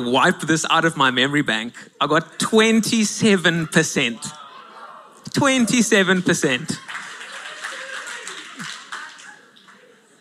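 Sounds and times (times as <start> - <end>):
speech: 0.0 - 4.4, 5.3 - 7.0
laughter: 3.4 - 10.1
crowd clapping: 6.0 - 10.1.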